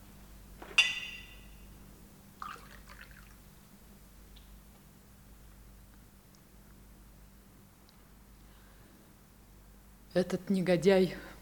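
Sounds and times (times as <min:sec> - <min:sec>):
low steady hum: 0:00.0 - 0:11.3
glass clinking: 0:00.6 - 0:01.6
water being poured into a glass: 0:02.4 - 0:03.4
speech: 0:10.2 - 0:11.3.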